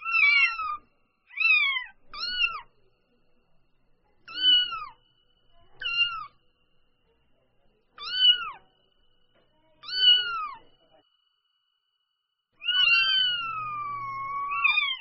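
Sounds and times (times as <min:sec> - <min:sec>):
domestic cat kitten mewing: 0:00.0 - 0:02.7, 0:04.3 - 0:05.0, 0:05.8 - 0:06.3, 0:08.0 - 0:08.6, 0:09.8 - 0:10.6, 0:12.6 - 0:15.0.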